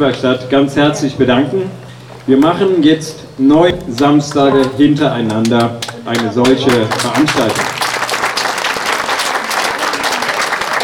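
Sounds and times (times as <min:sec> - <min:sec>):
speech: 0:00.0 - 0:07.8
audience applause: 0:05.8 - 0:10.8.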